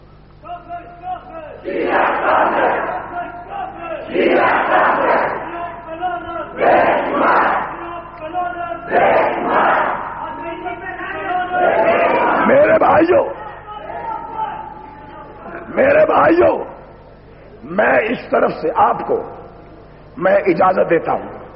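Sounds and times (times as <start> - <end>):
large crowd chanting a sectarian slogan: 1.6 - 5.6, 6.4 - 7.8, 8.7 - 10.3, 11.4 - 12.8
speech: 13.0 - 13.4, 15.8 - 16.6, 17.7 - 19.4, 20.2 - 21.4.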